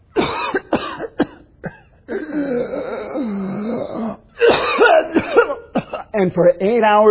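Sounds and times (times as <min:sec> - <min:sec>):
harsh hacking coughs from smoke: 0:00.1 - 0:06.2
long strained wheezing rasp of labored breathing: 0:02.1 - 0:05.1
speech: 0:06.2 - 0:07.0.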